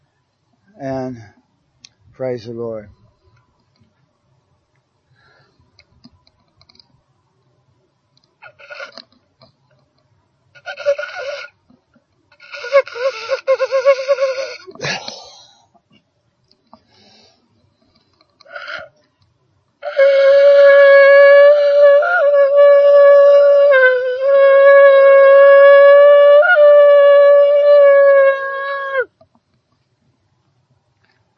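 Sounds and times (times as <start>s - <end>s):
speech: 0.8s - 1.4s, 2.2s - 3.0s
shofar blowing: 8.4s - 9.0s, 10.5s - 11.6s, 12.3s - 14.8s, 19.8s - 29.1s.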